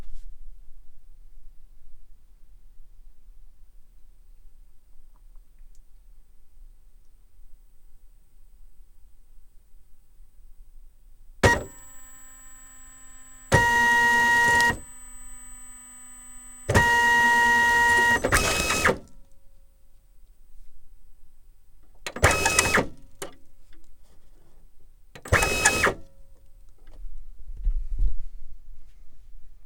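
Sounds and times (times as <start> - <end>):
label printer startup feed: 11.4 - 19.1, 22.2 - 22.9, 25.3 - 26.0.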